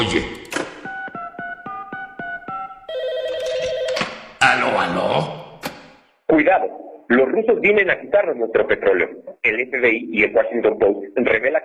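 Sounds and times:
speech: 0.0s - 0.4s, 6.5s - 11.6s
telephone ringing from automatic dialer: 2.9s - 4.4s.

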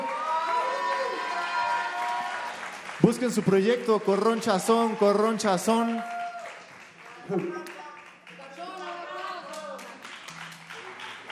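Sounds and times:
audience shouting and whooping: 0.0s - 2.5s, 4.6s - 6.5s
audience clapping: 0.0s - 11.3s
speech: 3.0s - 6.2s, 7.3s - 7.7s.

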